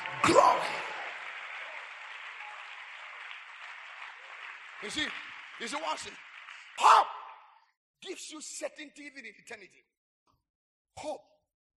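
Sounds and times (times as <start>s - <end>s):
audience clapping: 0.0s - 7.6s
speech: 0.2s - 0.8s, 4.8s - 7.1s, 8.0s - 10.0s, 11.0s - 11.3s.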